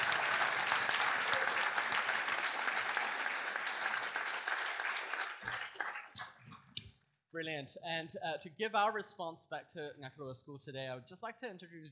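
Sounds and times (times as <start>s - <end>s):
audience applause: 0.0s - 6.6s
speech: 7.4s - 11.9s.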